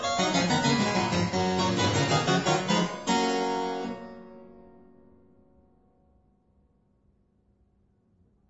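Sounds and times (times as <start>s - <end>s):
harpsichord piece for one keyboard: 0.0s - 5.4s.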